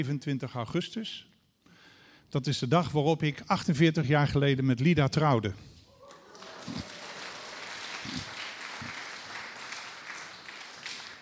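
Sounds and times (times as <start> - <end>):
speech: 0.0 - 1.3, 2.3 - 5.7
audience applause: 6.0 - 11.2.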